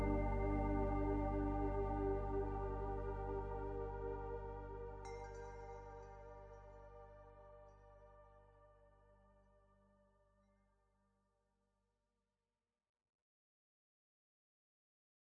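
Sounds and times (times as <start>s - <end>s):
music for Reiki and meditation: 0.0s - 10.1s.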